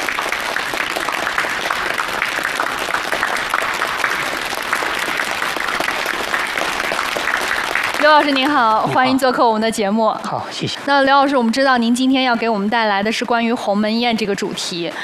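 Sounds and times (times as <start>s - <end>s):
audience applause welcoming the speaker: 0.0s - 9.4s
speech: 8.1s - 15.0s.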